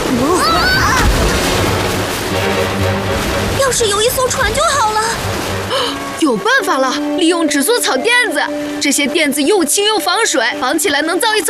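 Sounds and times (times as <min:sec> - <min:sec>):
small floating island breaking apart, rushing wash of noise: 0:00.0 - 0:09.2
speech: 0:03.8 - 0:04.9, 0:06.3 - 0:11.4.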